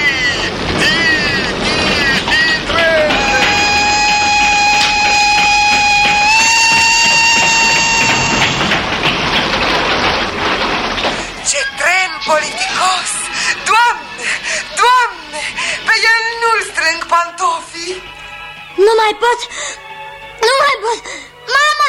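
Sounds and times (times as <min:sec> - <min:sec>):
brief chirping or shouted voices: 0:00.0 - 0:08.6, 0:11.4 - 0:15.5
train rushing past with a loud continuous rumble: 0:00.0 - 0:21.8
long steady train whistle blast: 0:02.7 - 0:08.8.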